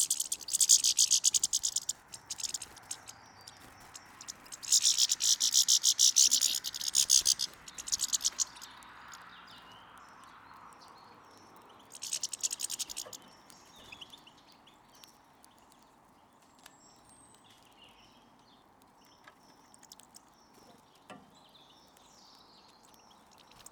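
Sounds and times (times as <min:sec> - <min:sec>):
European goldfinch Carduelis carduelis calls: 0:00.0 - 0:10.7, 0:11.4 - 0:14.3.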